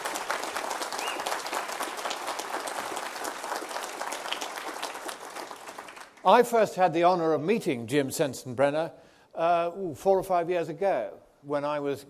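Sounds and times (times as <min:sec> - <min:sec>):
audience applause: 0:00.0 - 0:06.2
speech: 0:06.2 - 0:12.0.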